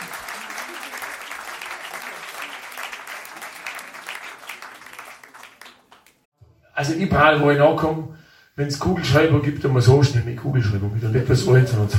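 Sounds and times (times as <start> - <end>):
applause: 0.0 - 6.3
speech: 6.8 - 11.9.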